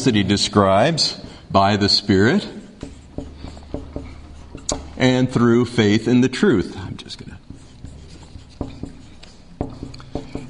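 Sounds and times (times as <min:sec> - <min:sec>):
speech: 0:00.0 - 0:02.6, 0:05.0 - 0:07.4
writing on a board during a lecture: 0:02.0 - 0:06.0, 0:06.6 - 0:10.4.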